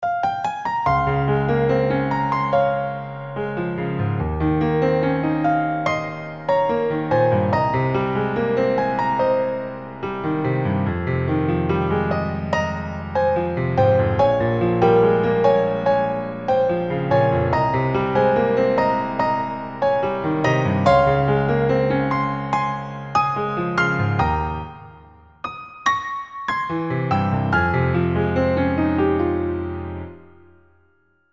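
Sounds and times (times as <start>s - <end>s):
piano: 0.0s - 31.3s.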